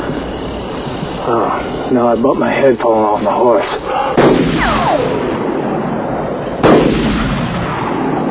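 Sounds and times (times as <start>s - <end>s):
whining streak: 0.0s - 8.2s
speech: 1.3s - 5.1s
gunshots: 4.1s - 5.6s, 6.6s - 8.2s.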